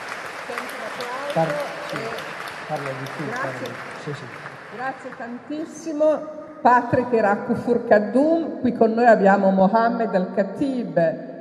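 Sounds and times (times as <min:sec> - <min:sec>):
audience applause: 0:00.0 - 0:05.5
speech: 0:00.5 - 0:11.3.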